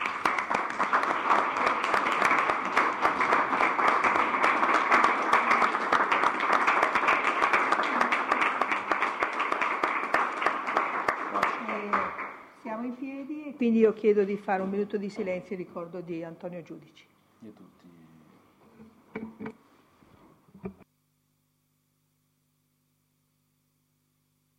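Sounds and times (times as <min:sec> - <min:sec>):
council chamber applause: 0:00.0 - 0:12.6
speech: 0:13.6 - 0:17.8.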